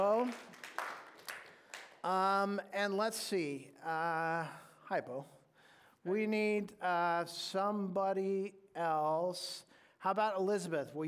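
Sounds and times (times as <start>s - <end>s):
speech: 0.0s - 0.6s, 2.0s - 5.4s, 6.0s - 11.0s
audience clapping: 0.0s - 2.2s.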